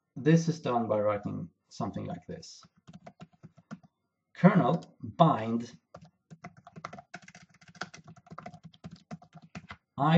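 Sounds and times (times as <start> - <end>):
speech: 0.2 - 2.8, 4.4 - 5.8, 10.0 - 10.1
rapid typing of code on a computer keyboard: 2.6 - 3.9, 5.9 - 9.8.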